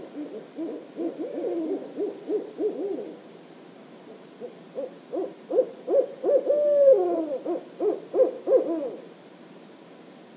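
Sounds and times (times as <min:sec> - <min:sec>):
barred owl hooting: 0:00.0 - 0:03.2, 0:04.4 - 0:09.1.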